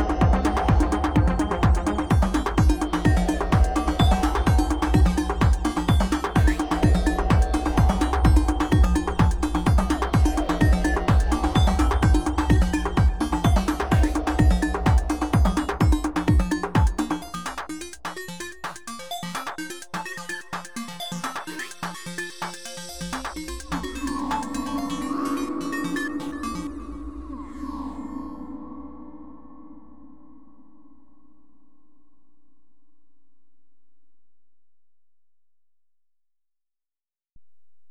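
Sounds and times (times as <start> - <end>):
techno music: 0.0 - 26.8.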